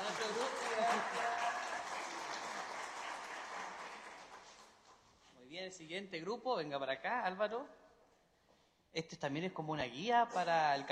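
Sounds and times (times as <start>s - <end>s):
audience applause: 0.0s - 4.8s
speech: 5.6s - 7.8s, 8.9s - 10.9s.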